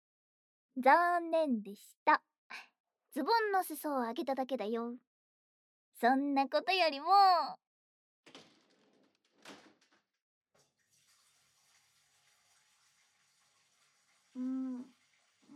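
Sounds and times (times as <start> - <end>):
speech: 0.8 - 5.1, 6.0 - 7.6, 14.4 - 15.0
water running from a tap into a bathtub: 10.6 - 15.5.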